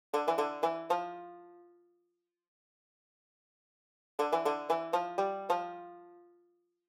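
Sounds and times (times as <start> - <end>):
banjo: 0.1 - 1.8, 4.2 - 6.4.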